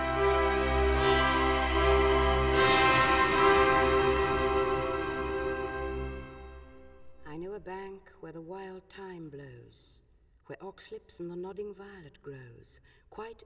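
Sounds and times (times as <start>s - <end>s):
march music: 0.0s - 7.3s.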